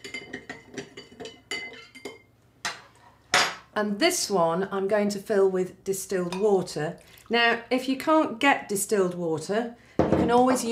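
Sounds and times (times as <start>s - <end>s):
spoon clinking against a glass while stirring salt into water: 0.0s - 2.3s
speech: 3.8s - 10.7s.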